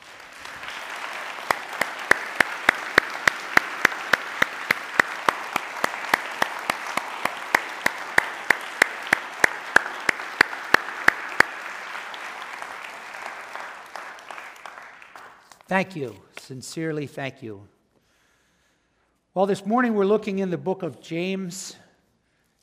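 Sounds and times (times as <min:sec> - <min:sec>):
round of applause: 0:00.0 - 0:15.9
speech: 0:15.7 - 0:17.8, 0:19.4 - 0:21.8.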